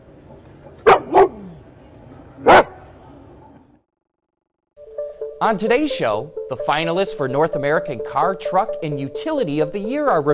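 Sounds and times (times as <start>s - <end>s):
dogs barking: 0.8s - 1.5s, 2.4s - 2.8s
speech: 5.4s - 10.3s.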